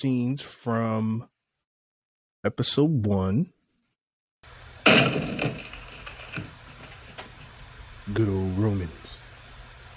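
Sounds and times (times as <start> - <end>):
speech: 0.0 - 1.3, 2.4 - 3.6, 4.9 - 5.8, 8.1 - 9.2
debris thudding: 4.5 - 8.0
wood splintering: 4.5 - 8.4
door being smashed open: 4.6 - 7.7.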